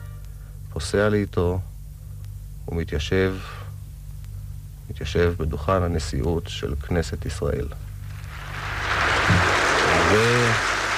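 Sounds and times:
speech: 0.8s - 1.7s, 2.7s - 3.6s, 4.9s - 7.9s, 10.1s - 10.8s
parliament applauding: 8.2s - 10.9s.

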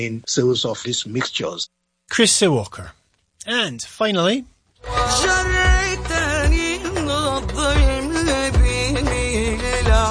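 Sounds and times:
speech: 0.0s - 5.6s
Syrian female star singing live in Damascus: 4.8s - 10.0s
instrumental backing: 4.8s - 10.0s
low thumping beats: 5.1s - 6.8s, 7.6s - 10.0s.

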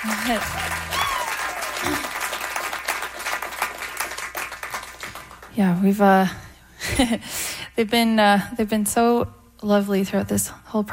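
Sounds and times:
speech: 0.0s - 0.8s, 1.8s - 2.1s, 5.6s - 6.4s, 7.0s - 10.9s
audience applause: 0.0s - 5.5s
person cheering: 0.2s - 2.4s.

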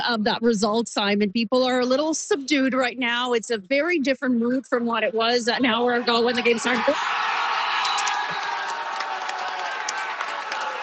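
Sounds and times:
speech: 0.0s - 7.2s
crowd cheering: 5.6s - 10.8s.

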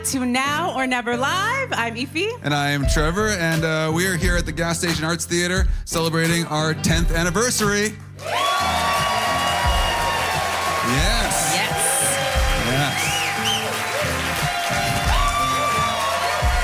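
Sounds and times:
speech: 0.0s - 8.9s
live audience cheering and whooping: 8.2s - 16.6s
people shouting: 8.3s - 16.6s
scattered clapping: 8.3s - 16.6s.

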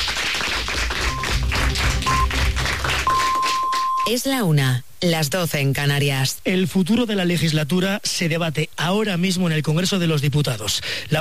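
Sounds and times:
studio audience applause: 0.0s - 4.1s
speech: 4.1s - 11.1s.

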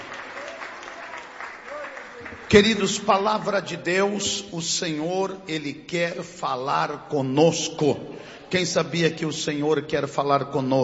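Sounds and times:
church congregation clapping: 0.0s - 4.2s
speech: 2.2s - 10.8s.

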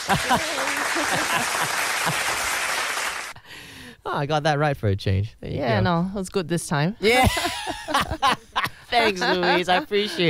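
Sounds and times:
laughter: 0.0s - 2.4s, 7.0s - 10.2s
applause: 0.0s - 3.4s
speech: 0.1s - 2.5s, 4.0s - 10.2s.

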